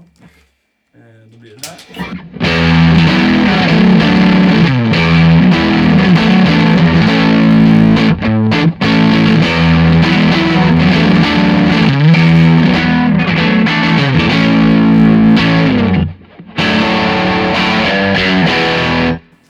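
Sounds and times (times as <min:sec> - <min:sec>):
speech: 0:00.1 - 0:02.4
distorted electric guitar through amp replica: 0:01.6 - 0:19.3.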